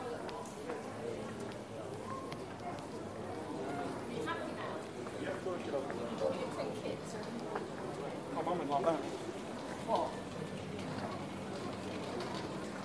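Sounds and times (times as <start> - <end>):
murmur of many voices on an urban street in Taormina, Sicily: 0.0 - 12.8.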